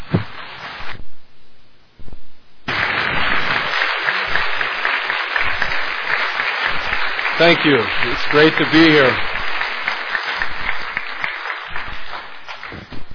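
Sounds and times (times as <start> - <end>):
audience clapping to welcome speaker Doug Bond: 2.7 - 13.1
speech: 7.4 - 9.3.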